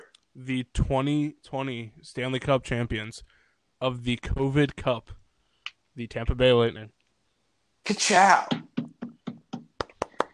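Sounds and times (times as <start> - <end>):
speech: 0.4 - 5.2, 6.0 - 7.0, 7.8 - 8.6
golf clap: 8.5 - 10.3.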